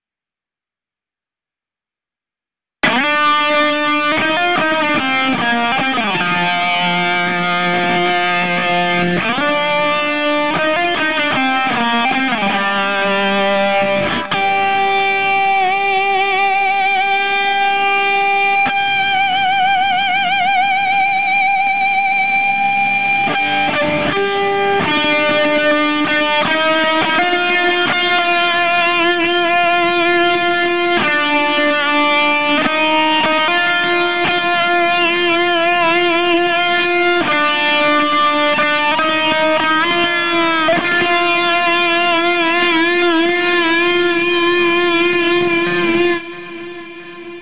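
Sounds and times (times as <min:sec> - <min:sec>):
guitar: 0:02.8 - 0:47.3.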